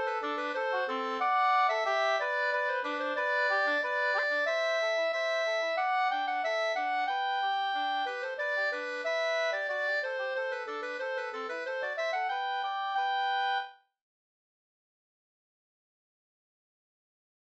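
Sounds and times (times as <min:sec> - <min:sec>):
polka music: 0:00.0 - 0:13.8.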